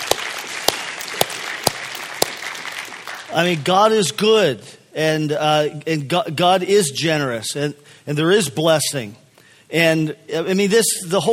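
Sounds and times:
audience applause: 0:00.0 - 0:03.4
speech: 0:03.3 - 0:11.3.

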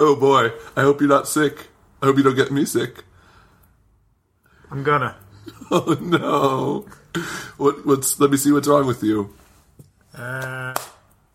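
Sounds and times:
speech: 0:00.0 - 0:03.1, 0:04.7 - 0:09.4, 0:10.2 - 0:11.3
quiet shuffling: 0:08.9 - 0:10.1
single sharp hand clap: 0:10.3 - 0:11.3.

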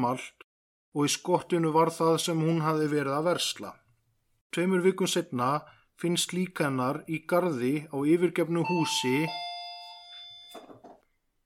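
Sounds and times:
speech: 0:00.0 - 0:03.8, 0:04.5 - 0:09.5
doorbell chime: 0:08.6 - 0:10.8.

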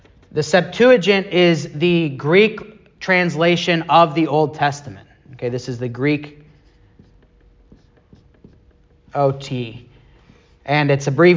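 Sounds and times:
speech: 0:00.4 - 0:06.4, 0:09.1 - 0:09.9, 0:10.7 - 0:11.3
marker or chalk writing on a board during a church class: 0:05.1 - 0:11.3.

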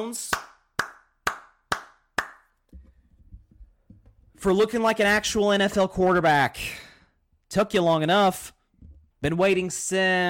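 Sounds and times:
speech: 0:00.0 - 0:00.5, 0:04.4 - 0:06.8, 0:07.5 - 0:08.6, 0:09.2 - 0:10.2
golf clap: 0:00.3 - 0:02.6.

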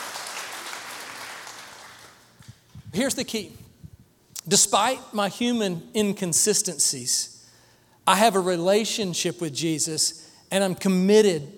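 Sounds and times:
church congregation clapping: 0:00.0 - 0:02.6
speech: 0:02.9 - 0:03.6, 0:04.5 - 0:07.3, 0:08.0 - 0:11.5.

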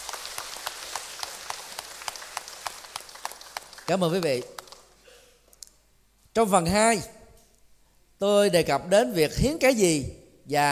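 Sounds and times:
audience applause: 0:00.0 - 0:04.9
speech: 0:03.9 - 0:04.6, 0:06.4 - 0:07.2, 0:08.2 - 0:10.6.

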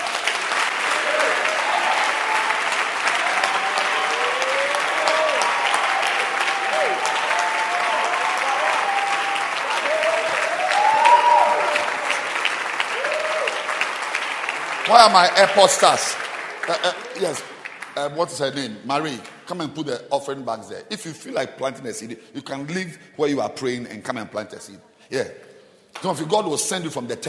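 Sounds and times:
congregation clapping hands in church: 0:00.0 - 0:19.6
speech: 0:14.9 - 0:27.2.

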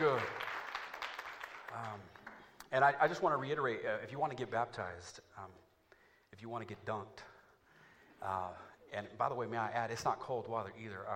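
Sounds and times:
crowd applauding: 0:00.0 - 0:02.5
speech: 0:02.7 - 0:05.7, 0:06.3 - 0:07.3, 0:08.2 - 0:11.1.

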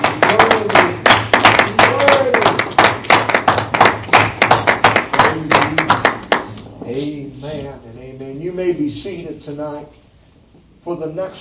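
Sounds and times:
crowd clapping in praise: 0:00.0 - 0:06.6
speech: 0:08.6 - 0:10.1, 0:10.8 - 0:11.3.

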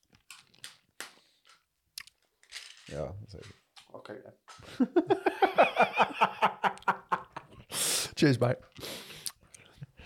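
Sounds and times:
chewing and sucking on mints: 0:02.0 - 0:02.2, 0:08.7 - 0:09.8
speech: 0:02.9 - 0:06.3, 0:08.2 - 0:08.9
laughter: 0:04.7 - 0:07.6.

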